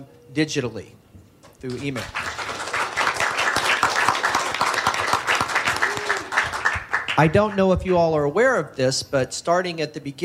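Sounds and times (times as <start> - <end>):
speech: 0.0 - 1.0, 1.6 - 2.3, 7.2 - 10.2
audience clapping: 1.6 - 7.8.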